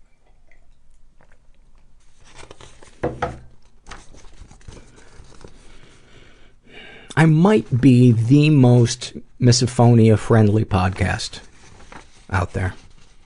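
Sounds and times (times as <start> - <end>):
person sipping tea: 0.0 - 2.2
speech: 7.2 - 11.5, 12.3 - 12.8.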